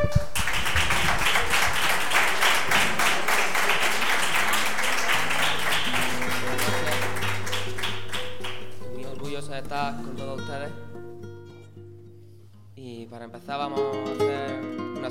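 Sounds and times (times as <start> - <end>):
audience applause: 0.0 - 8.9
speech: 9.8 - 10.9, 13.0 - 15.0.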